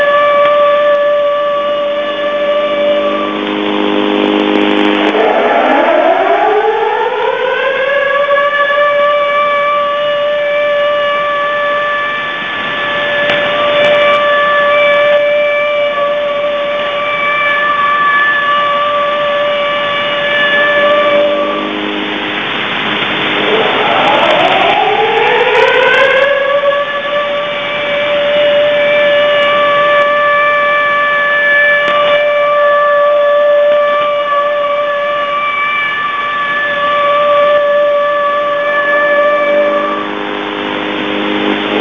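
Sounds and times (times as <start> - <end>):
air raid siren signal on 6911 kHz shortwave: 0.0 - 41.7.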